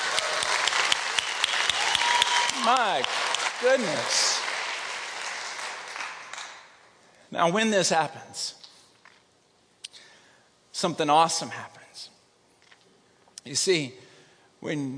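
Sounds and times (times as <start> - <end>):
audience applause: 0.0 - 6.8
speech: 2.6 - 4.5, 7.3 - 8.6, 10.8 - 12.1, 13.4 - 14.0, 14.6 - 14.9.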